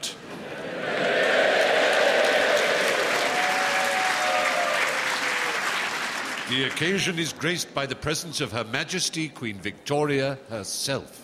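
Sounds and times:
large crowd applauding in a concert hall: 0.6s - 7.2s
faint cheering: 0.9s - 6.0s
speech: 6.5s - 11.2s.

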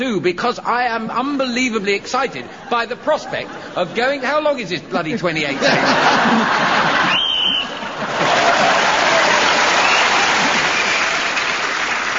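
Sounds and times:
speech: 0.0s - 6.9s
laughter: 2.5s - 4.2s, 5.0s - 9.7s
audience applause: 6.2s - 12.1s.

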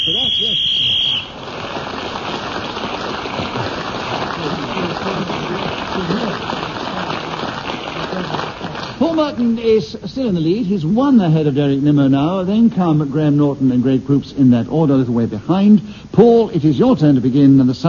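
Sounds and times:
whistle blown to end the round: 0.0s - 1.4s
laughter: 3.1s - 9.4s
speech: 9.2s - 17.8s.

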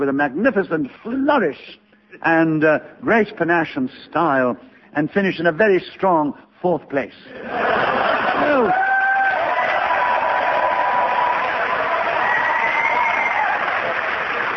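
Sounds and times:
speech: 0.0s - 8.9s
laughter: 7.3s - 8.8s
audience cheering: 8.0s - 14.5s.

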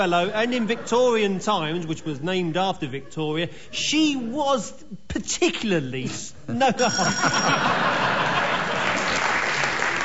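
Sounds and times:
laughter: 0.0s - 2.2s, 6.5s - 9.4s
speech: 0.0s - 8.2s
audience clapping: 8.2s - 10.0s.

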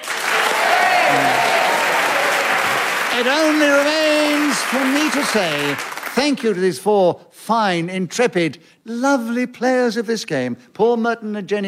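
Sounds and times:
audience applause: 0.0s - 6.2s
speech: 3.2s - 11.6s.

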